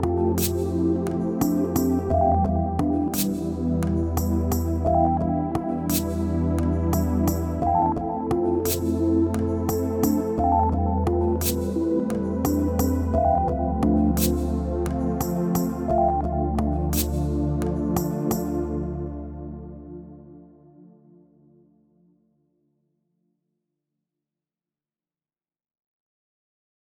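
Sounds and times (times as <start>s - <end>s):
instrumental music: 0.0s - 20.9s.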